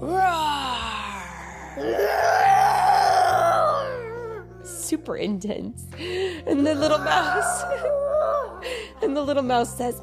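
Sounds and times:
human voice imitating a lion's roar: 0.0 - 4.4, 6.8 - 8.6
speech: 5.0 - 10.0.

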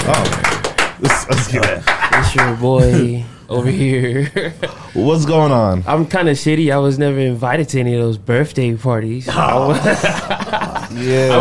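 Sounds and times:
audience clapping: 0.0 - 2.9
laughter: 1.0 - 5.0, 9.3 - 11.3
speech: 1.3 - 11.3.

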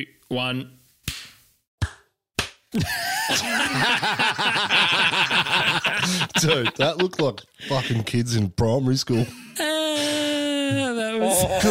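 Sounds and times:
speech: 0.0 - 0.8, 2.7 - 9.7, 10.7 - 11.6
hand clap in front of the microphone for recording sync: 1.1 - 2.6
laughter: 2.8 - 8.2.

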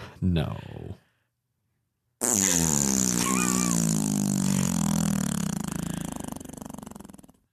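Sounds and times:
long drawn-out fart noise effect: 2.2 - 7.5.

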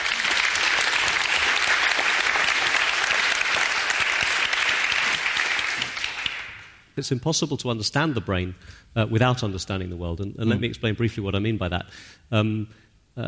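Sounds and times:
audience applauding a neuroscientist introduced at a talk: 0.0 - 6.8
speech: 7.0 - 13.2.

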